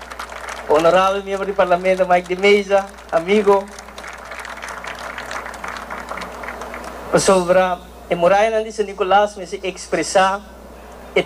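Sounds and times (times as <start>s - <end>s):
crowd clapping: 0.0s - 7.4s
low steady hum: 0.0s - 11.2s
speech: 0.7s - 3.8s, 7.1s - 10.5s.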